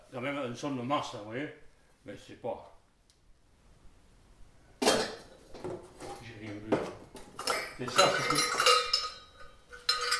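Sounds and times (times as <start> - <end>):
speech: 0.1 - 2.8, 7.8 - 8.6
small handmade metal bells clinking: 7.4 - 10.1.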